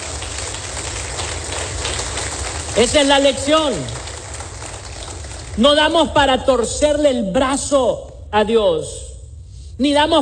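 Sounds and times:
loud audience applause: 0.0 - 5.6
speech: 2.8 - 4.0, 5.6 - 9.0, 9.8 - 10.2.

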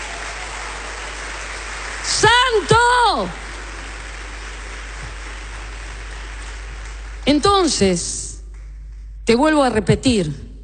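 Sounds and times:
audience applauding: 0.0 - 7.7
speech: 2.1 - 3.4, 7.3 - 8.3, 9.3 - 10.4.

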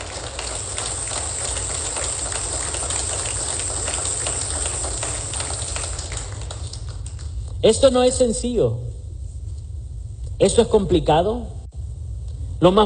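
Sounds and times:
audience applause: 0.0 - 7.4
speech: 7.6 - 8.9, 10.4 - 11.6, 12.6 - 12.8.

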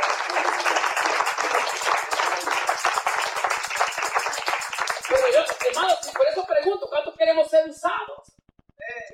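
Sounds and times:
audience applauding: 0.0 - 6.6
speech: 5.9 - 8.2.

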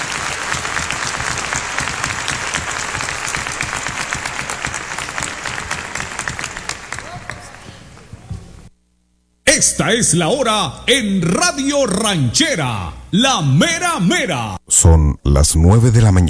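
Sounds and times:
crowd applause: 0.0 - 8.1
speech: 9.6 - 16.2.

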